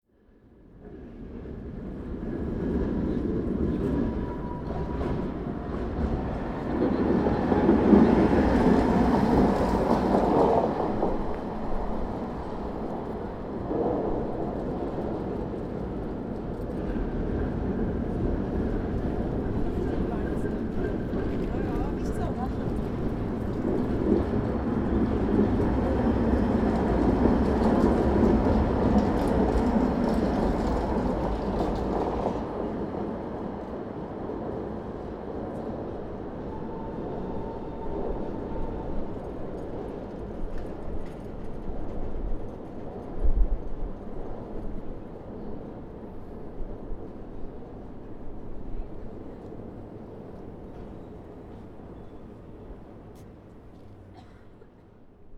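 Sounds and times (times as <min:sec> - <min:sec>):
trams: 0:00.4 - 0:55.3.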